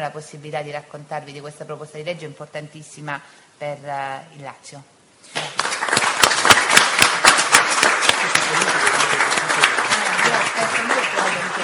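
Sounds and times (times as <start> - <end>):
speech: 0.0 - 5.6, 10.6 - 11.0
audience applause: 5.4 - 11.6.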